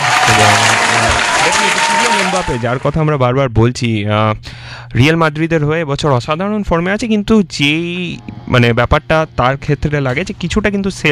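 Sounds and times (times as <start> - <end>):
audience applause on a quiz show: 0.0 - 2.8
speech: 2.4 - 11.1.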